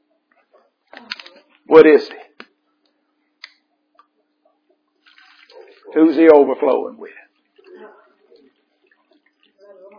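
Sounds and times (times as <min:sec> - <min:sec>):
speech: 0:01.7 - 0:02.3, 0:06.0 - 0:07.2
water pouring and splashing: 0:05.0 - 0:06.0, 0:07.2 - 0:09.9.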